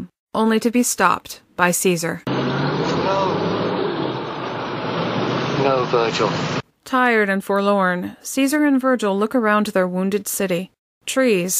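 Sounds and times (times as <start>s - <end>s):
speech: 0.4s - 2.3s, 5.8s - 11.5s
school bus engine droning while driving away: 2.3s - 6.6s.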